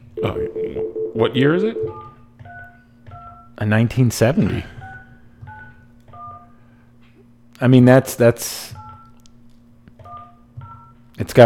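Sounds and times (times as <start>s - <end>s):
speech: 0.2s - 2.0s, 3.6s - 4.8s, 7.6s - 8.8s, 11.2s - 11.4s
telephone number being dialed: 0.2s - 2.2s.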